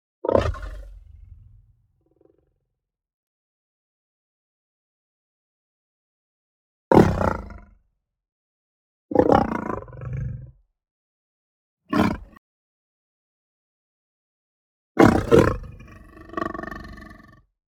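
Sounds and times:
lion growling and snarling: 0.3 - 2.3, 6.9 - 7.7, 9.2 - 10.6, 11.9 - 12.4, 15.0 - 17.4.

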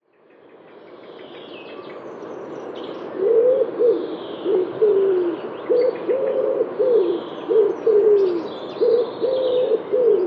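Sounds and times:
common wood pigeon cooing: 3.2 - 10.2.

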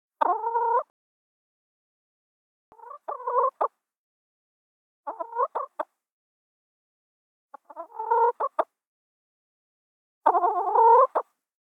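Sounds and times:
chicken clucking: 0.2 - 0.9, 2.7 - 3.7, 5.1 - 5.9, 7.6 - 8.7, 10.2 - 11.3.

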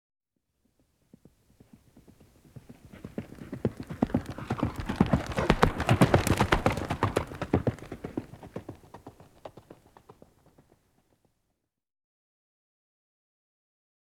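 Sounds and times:
horse galloping hoofbeats: 0.6 - 11.3.

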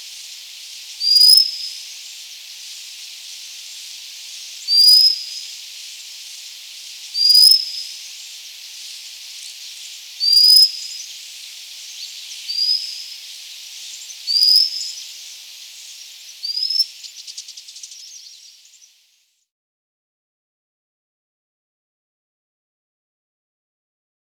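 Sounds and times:
steady roaring hiss of a stream: 0.0 - 17.0
white-capped redstart calling with high thin rising whistles: 0.0 - 18.9.

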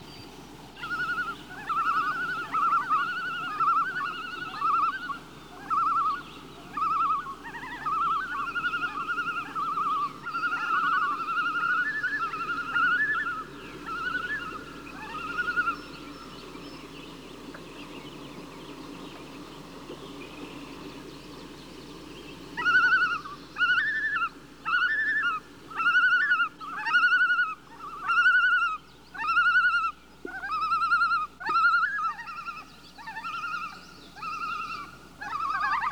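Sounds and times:
loon tremolo flight calls: 0.8 - 35.9.

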